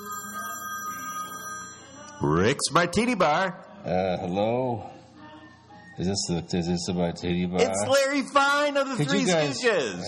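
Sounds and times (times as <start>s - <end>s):
telephone ringing with a steady electronic tone: 0.0s - 2.2s
speech: 2.2s - 5.0s, 6.0s - 10.0s.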